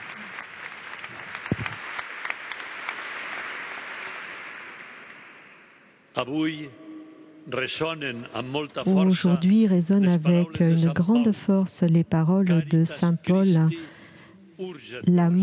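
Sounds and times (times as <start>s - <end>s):
audience applauding: 0.0s - 5.8s
speech: 6.2s - 6.8s, 7.4s - 13.9s, 14.6s - 15.4s.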